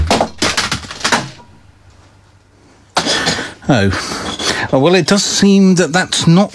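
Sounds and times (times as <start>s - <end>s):
CD thrown across room and shattering: 0.0s - 1.7s
speech: 3.7s - 6.5s.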